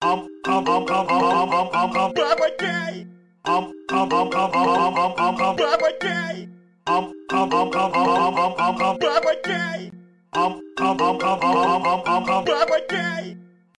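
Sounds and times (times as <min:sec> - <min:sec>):
iPhone ringtone: 0:00.0 - 0:13.5.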